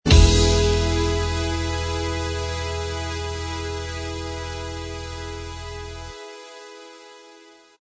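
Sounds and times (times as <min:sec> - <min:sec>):
instrumental theme: 0:00.1 - 0:07.7.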